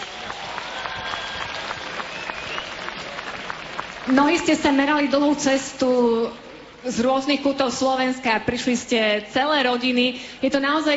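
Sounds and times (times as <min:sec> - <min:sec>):
crowd applause: 0:00.0 - 0:04.6
speech: 0:04.1 - 0:10.9.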